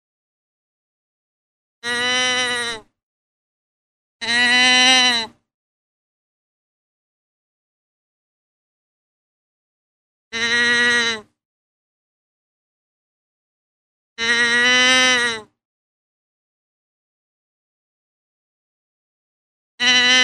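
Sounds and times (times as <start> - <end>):
deer bleating: 1.8 - 2.9, 4.2 - 5.3, 10.4 - 11.3, 14.2 - 15.5, 19.8 - 20.2.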